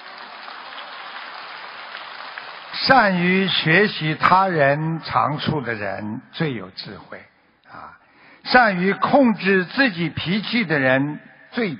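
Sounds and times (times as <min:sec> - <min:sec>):
audience applause at a Buddhist talk: 0:00.0 - 0:04.4
speech: 0:02.8 - 0:11.7.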